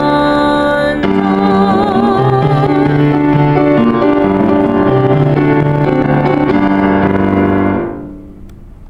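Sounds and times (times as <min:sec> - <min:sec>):
dance music: 0:01.1 - 0:08.0.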